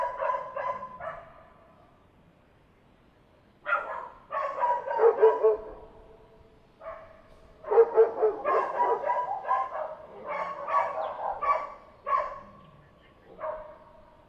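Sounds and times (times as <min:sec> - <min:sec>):
dog barking: 0:00.0 - 0:01.6, 0:03.7 - 0:05.9, 0:06.8 - 0:12.6, 0:13.3 - 0:14.2.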